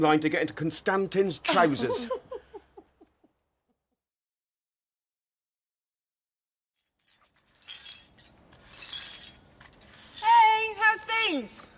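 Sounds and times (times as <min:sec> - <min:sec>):
speech: 0:00.0 - 0:02.2
laughter: 0:01.5 - 0:03.3
old glassware shattering: 0:06.8 - 0:10.3
falling glass pieces clinking: 0:06.8 - 0:10.5.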